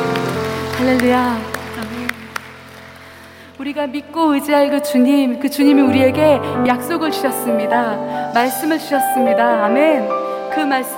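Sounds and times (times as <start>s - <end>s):
audience applause: 0.0s - 3.6s
speech: 0.8s - 1.5s, 3.6s - 10.9s.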